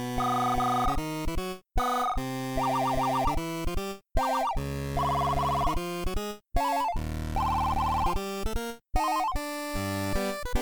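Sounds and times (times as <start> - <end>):
funny chiptune track in C64 style: 0.1 - 10.4
ringtone effects: 0.2 - 1.1, 1.8 - 3.5, 4.2 - 5.8, 6.6 - 8.2, 9.0 - 9.5.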